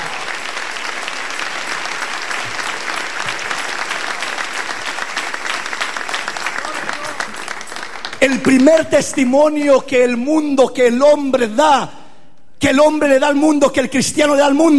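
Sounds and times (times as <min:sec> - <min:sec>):
audience applause: 0:00.0 - 0:08.8
speech: 0:08.2 - 0:12.0, 0:12.6 - 0:14.7.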